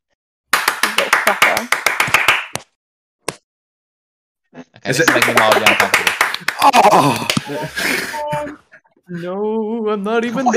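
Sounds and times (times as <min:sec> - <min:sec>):
hand clap: 0:00.5 - 0:02.7, 0:05.0 - 0:07.5
speech: 0:01.3 - 0:01.9, 0:04.8 - 0:10.5
laughter: 0:04.7 - 0:09.2, 0:10.2 - 0:10.5.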